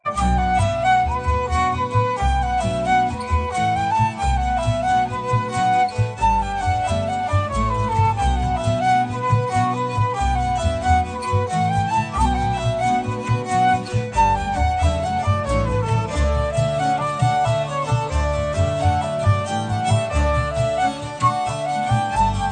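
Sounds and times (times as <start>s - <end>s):
slow slip jig tune: 0.0s - 22.5s.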